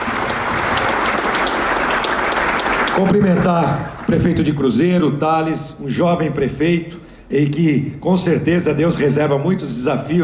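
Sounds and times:
audience applause: 0.0 - 4.2
speech: 3.0 - 10.2.

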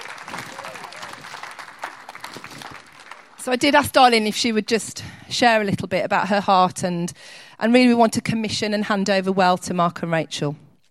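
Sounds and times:
audience round of applause: 0.0 - 3.5
speech: 3.4 - 10.6.

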